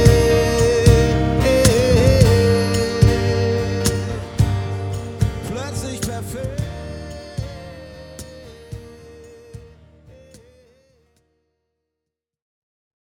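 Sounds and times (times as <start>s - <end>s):
piano: 0.0s - 10.3s
acoustic band: 0.0s - 10.9s.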